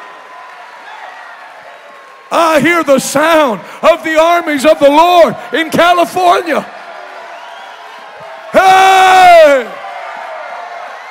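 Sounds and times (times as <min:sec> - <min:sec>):
crowd clapping: 0:00.0 - 0:11.1
speech: 0:02.3 - 0:06.8.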